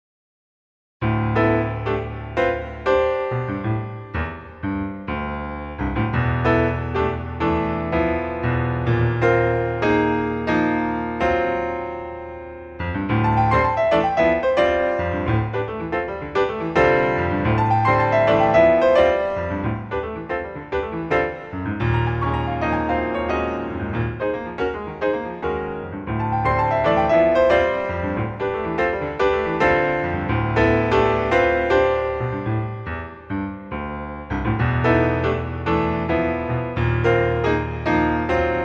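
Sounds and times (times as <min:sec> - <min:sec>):
modal piano tunes: 0:01.0 - 0:38.6.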